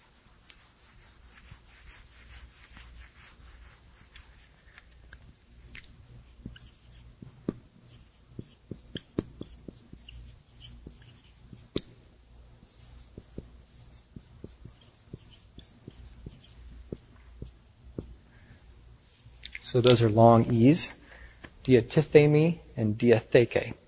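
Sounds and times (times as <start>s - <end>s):
writing on a board: 0.0s - 4.5s, 6.4s - 11.9s, 12.6s - 18.2s
soft hiss: 0.0s - 23.8s
speech: 19.7s - 21.0s, 21.6s - 23.8s.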